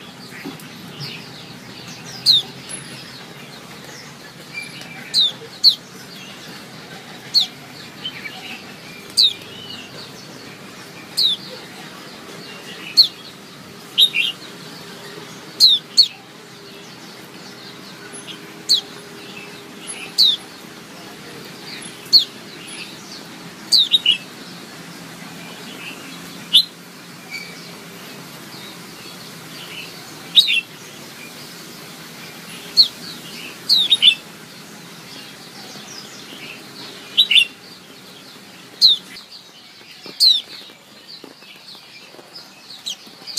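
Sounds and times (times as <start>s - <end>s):
Oriental white-eye chirping: 0.0s - 14.8s, 17.4s - 20.6s, 21.2s - 24.6s, 28.5s - 43.3s.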